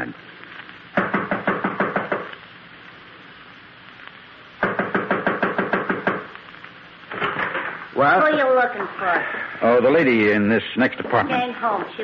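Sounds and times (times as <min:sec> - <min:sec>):
sharp loud knocking on an apartment door: 0:01.0 - 0:02.2, 0:04.6 - 0:06.2
speech: 0:08.0 - 0:12.0.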